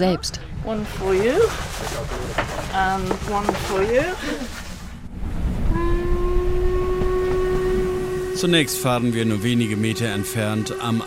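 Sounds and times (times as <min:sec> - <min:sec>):
speech: 0:00.0 - 0:04.7, 0:08.4 - 0:11.0
steam train rumbling: 0:00.0 - 0:11.0
steam train whistle: 0:05.7 - 0:11.0.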